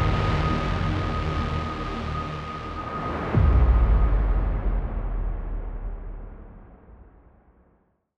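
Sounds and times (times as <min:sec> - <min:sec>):
epic music: 0:00.0 - 0:07.1.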